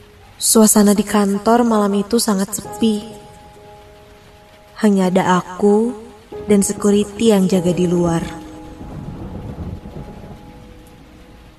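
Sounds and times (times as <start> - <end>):
heavy rain: 0.0 - 11.5
speech: 0.4 - 3.2, 4.8 - 8.4
rolling thunder: 6.4 - 11.5.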